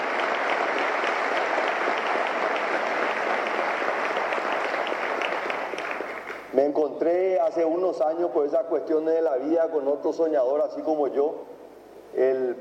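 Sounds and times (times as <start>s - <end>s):
audience applause: 0.0s - 6.5s
speech: 6.6s - 11.5s, 12.1s - 12.5s.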